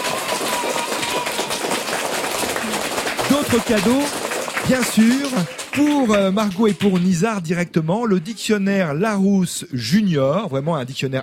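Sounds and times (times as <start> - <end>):
audience applauding warmly: 0.0 - 7.4
speech: 3.4 - 11.2.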